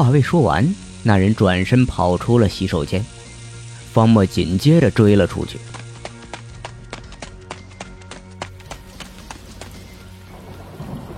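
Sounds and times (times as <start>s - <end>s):
speech: 0.0s - 3.2s, 3.9s - 5.8s
rain falling: 8.6s - 11.1s.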